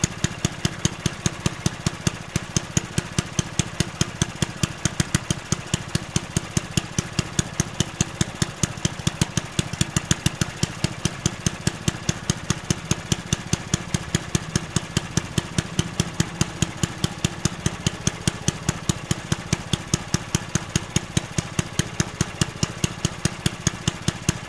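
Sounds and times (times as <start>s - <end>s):
lawn mower: 0.0s - 24.4s.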